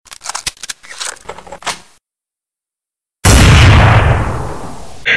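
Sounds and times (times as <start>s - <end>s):
sniper rifle headshot: 3.2s - 5.0s.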